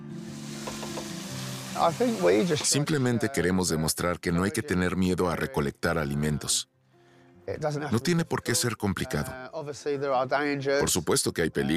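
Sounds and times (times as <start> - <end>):
giant hogweed heads frying in a pan: 0.0 - 3.1
speech: 1.8 - 6.7, 7.5 - 11.7.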